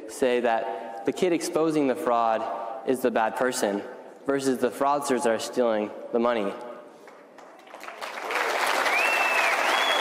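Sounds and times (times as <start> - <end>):
speech: 0.1 - 6.7
audience clapping: 7.0 - 9.9
thin whistle: 8.9 - 9.9.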